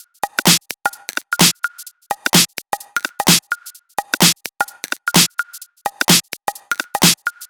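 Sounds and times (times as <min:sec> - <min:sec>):
drums: 0:00.0 - 0:07.4.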